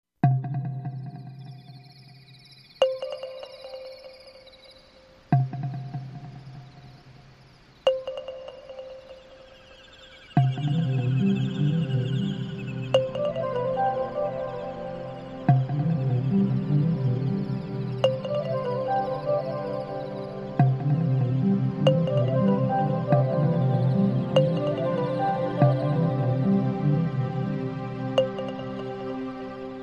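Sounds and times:
crickets chirping: 0.7 - 29.8
pastoral music: 10.4 - 29.8.

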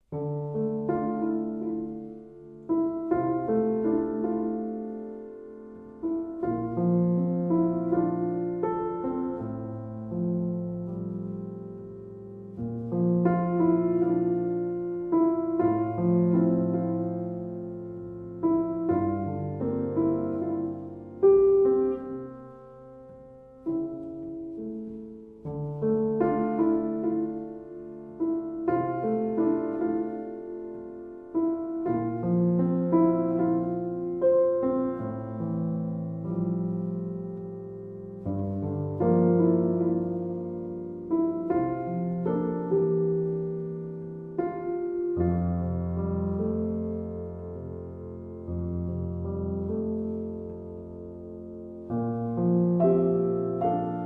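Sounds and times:
solo piano: 0.0 - 54.0.

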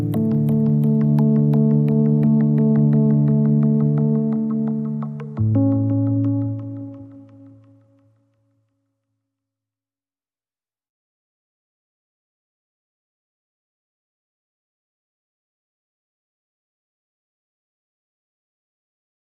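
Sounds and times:
percussion: 0.0 - 7.7.

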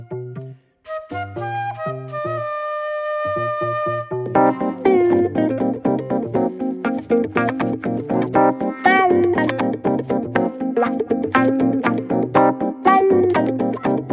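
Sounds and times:
guitar: 0.0 - 14.1
keyboard: 0.0 - 14.1
flute: 0.8 - 4.5.

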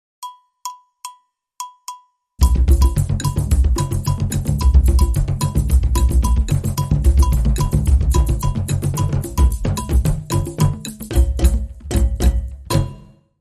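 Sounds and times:
festival drums: 2.4 - 13.1.

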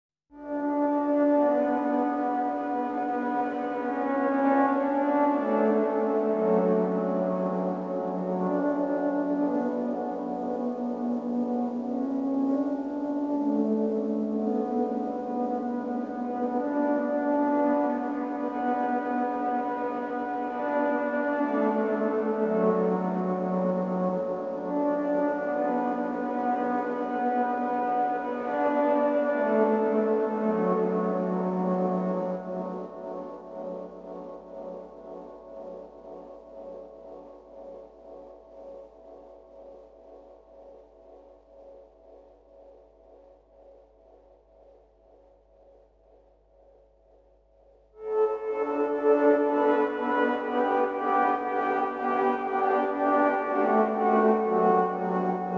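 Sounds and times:
synth pad: 0.4 - 55.5.

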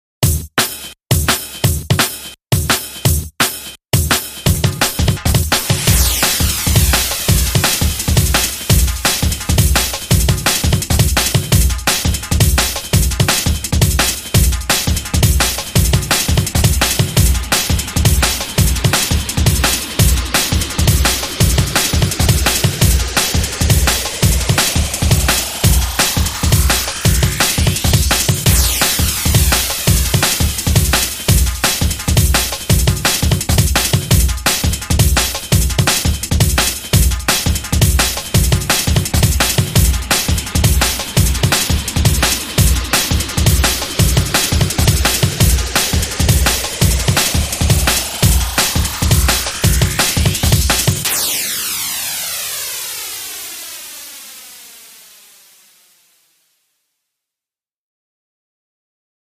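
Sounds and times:
music beat: 0.2 - 55.5.

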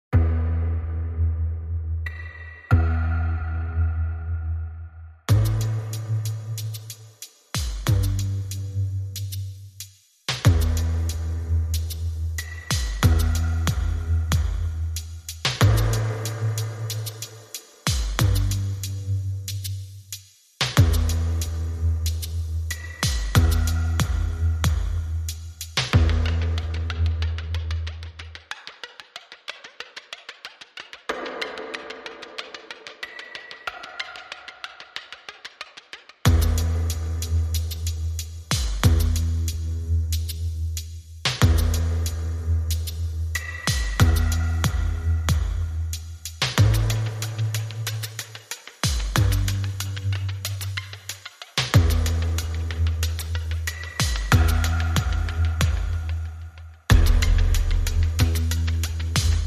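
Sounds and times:
bass: 0.0 - 29.0, 36.2 - 59.4
drums: 5.3 - 59.4.

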